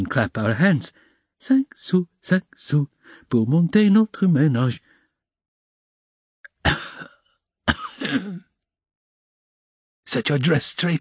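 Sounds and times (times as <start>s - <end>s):
speech: 0.0s - 4.9s, 7.7s - 8.4s, 10.1s - 11.0s
harsh coughing breaking into a wheezy fit: 6.5s - 8.6s.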